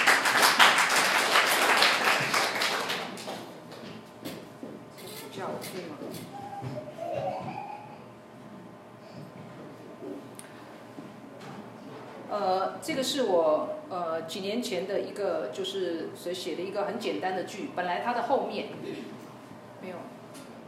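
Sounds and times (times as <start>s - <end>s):
audience applause: 0.0s - 3.5s
soft murmur: 3.2s - 13.1s
speech: 12.8s - 19.1s.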